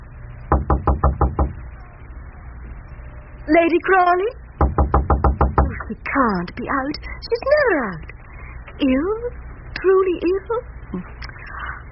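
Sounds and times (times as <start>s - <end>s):
knocking on a chamber door: 0.5s - 1.6s, 4.6s - 5.8s
speech: 3.5s - 4.4s, 6.0s - 8.1s, 8.8s - 11.3s.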